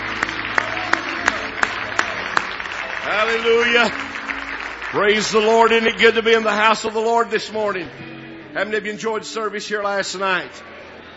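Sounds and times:
audience clapping hands in praise: 0.0 - 7.7
crowd noise: 0.0 - 11.1
speech: 3.1 - 4.1, 4.9 - 10.7.

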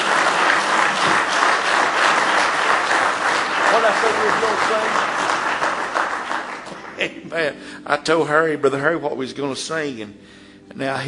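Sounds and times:
audience hand clapping: 0.0 - 7.5
speech: 3.9 - 5.2, 7.0 - 11.0.

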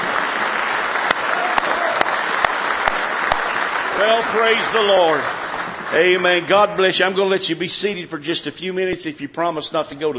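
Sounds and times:
audience clapping hands in praise: 0.0 - 7.4
speech: 4.0 - 10.1.

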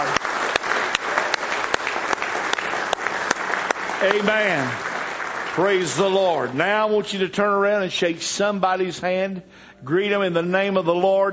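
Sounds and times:
audience clapping hands in praise: 0.0 - 7.2
speech: 4.0 - 4.9, 5.6 - 11.3.

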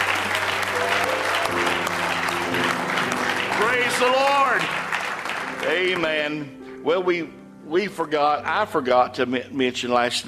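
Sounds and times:
audience applause: 0.0 - 6.4
speech: 4.0 - 4.8, 5.6 - 10.2.

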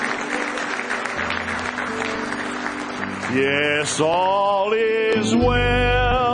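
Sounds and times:
audience hand clapping: 0.0 - 4.7
speech: 3.3 - 6.2.

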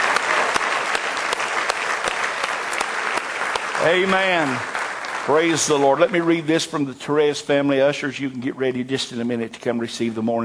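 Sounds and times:
audience hand clapping applause: 0.0 - 6.9
speech: 3.8 - 4.7, 5.3 - 10.4.

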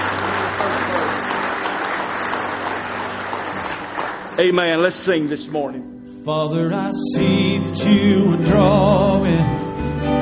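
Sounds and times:
audience hand clapping in praise: 0.0 - 5.6
speech: 4.4 - 10.2.

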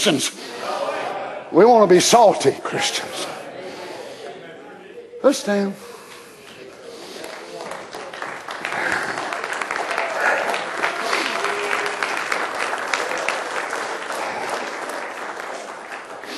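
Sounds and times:
speech: 0.0 - 0.7, 1.5 - 3.4, 5.2 - 5.9
audience applause: 6.2 - 16.3.

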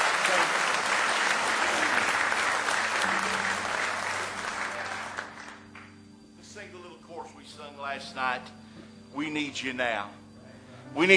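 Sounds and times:
audience hand clapping: 0.0 - 6.1
speech: 9.2 - 10.2, 10.9 - 11.1.

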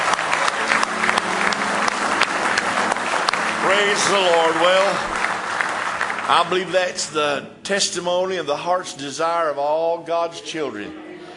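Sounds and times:
audience clapping: 0.0 - 7.2
speech: 3.7 - 5.2, 6.3 - 11.1.

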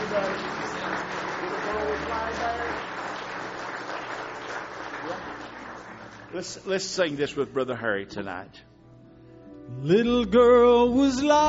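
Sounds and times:
church congregation clapping in praise: 0.0 - 7.4
speech: 6.3 - 8.7, 9.7 - 11.4.

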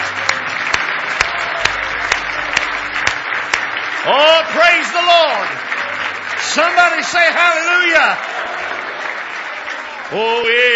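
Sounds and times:
audience hand clapping: 0.0 - 10.7
speech: 4.0 - 5.6, 6.4 - 8.3, 10.1 - 10.7.

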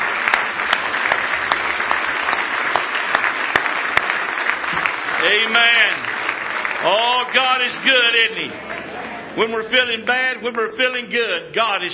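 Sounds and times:
audience hand clapping: 0.0 - 9.2
speech: 5.2 - 6.1, 6.8 - 8.8, 9.4 - 11.9.

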